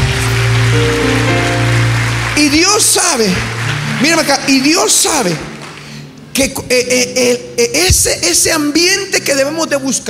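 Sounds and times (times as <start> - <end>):
audience applause: 0.0 - 6.1
speech: 2.4 - 5.6, 6.4 - 10.0.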